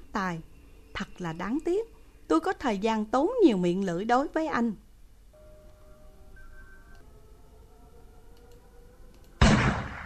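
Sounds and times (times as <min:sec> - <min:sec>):
speech: 0:00.2 - 0:04.8
gunshot: 0:09.4 - 0:10.0.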